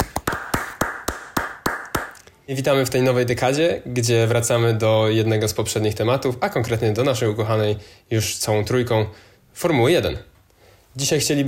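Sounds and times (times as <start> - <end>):
applause sound effect of sharp evenly spaced claps: 0.0 - 2.3
speech: 2.5 - 10.3, 11.0 - 11.4.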